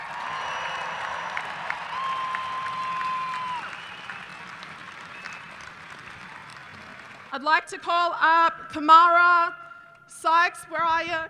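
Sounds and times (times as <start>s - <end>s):
audience applause and cheering at an Australia Day event: 0.0s - 7.4s
speech: 7.4s - 11.2s.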